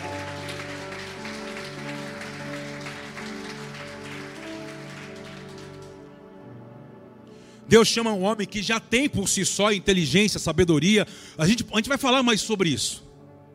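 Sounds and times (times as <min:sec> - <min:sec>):
audience applause: 0:00.0 - 0:06.1
sustained keyboard chords: 0:00.0 - 0:13.5
speech: 0:07.7 - 0:13.1.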